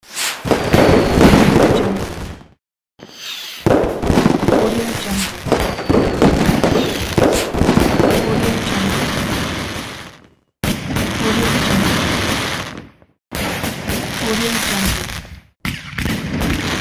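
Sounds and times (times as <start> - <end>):
firework: 0.0 - 16.8.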